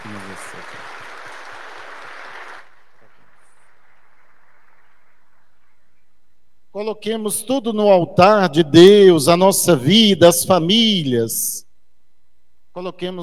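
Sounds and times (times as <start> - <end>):
applause for the married couples: 0.0 - 5.8
speech: 6.8 - 11.6, 12.8 - 13.2.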